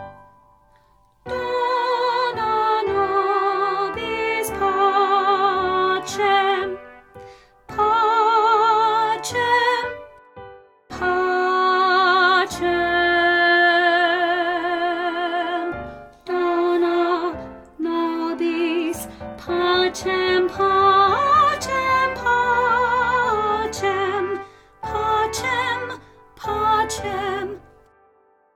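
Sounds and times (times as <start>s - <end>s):
soprano singing: 1.2s - 28.4s.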